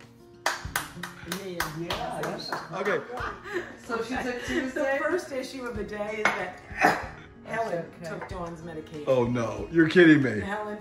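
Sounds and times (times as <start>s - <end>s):
single hand clap: 0.0s - 3.3s
speech: 1.3s - 10.7s.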